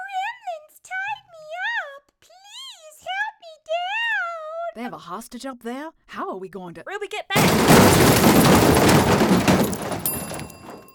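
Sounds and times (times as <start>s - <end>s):
speech: 4.8s - 8.8s
elevator crashing: 7.4s - 10.9s.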